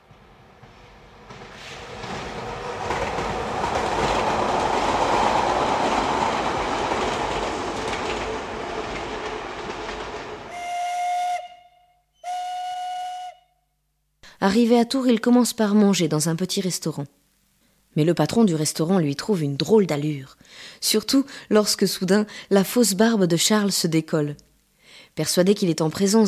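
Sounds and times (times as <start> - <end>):
steam train running on rails: 0.0 - 11.0
speech: 14.5 - 17.2, 18.0 - 26.2.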